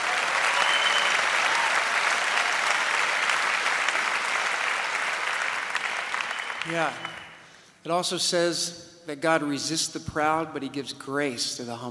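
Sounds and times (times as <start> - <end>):
crowd applauding: 0.0 - 7.5
speech: 6.6 - 7.1, 7.8 - 11.8.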